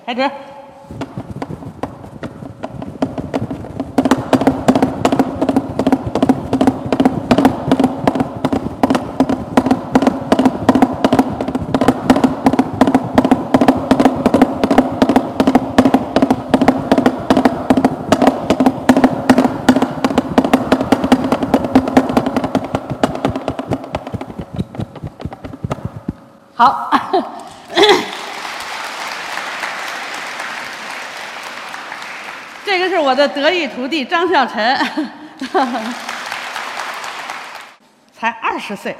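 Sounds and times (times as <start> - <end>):
speech: 0.0 - 1.0, 33.1 - 36.0, 38.2 - 38.9
foley artists imitating a thundering herd of galloping horses: 0.9 - 26.3
laughter: 27.0 - 28.5, 34.8 - 36.2.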